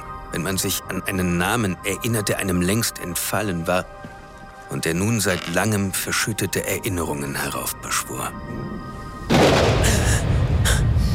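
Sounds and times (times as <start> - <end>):
speech: 0.4 - 9.0
thunder of an approaching thunderstorm: 9.3 - 11.1.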